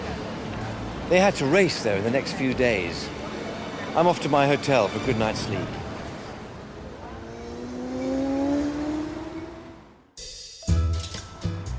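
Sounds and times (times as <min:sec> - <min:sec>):
speech: 0:01.1 - 0:03.2, 0:03.9 - 0:05.8
taxi engine accelerating: 0:05.4 - 0:10.0.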